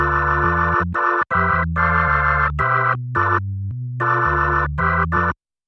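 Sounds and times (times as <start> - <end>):
dirty electro music: 0.1 - 3.4, 4.0 - 5.3.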